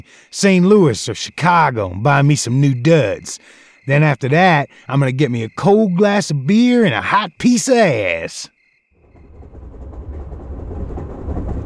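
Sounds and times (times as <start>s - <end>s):
speech: 0.1s - 8.6s
passenger train running on rails: 9.0s - 11.6s.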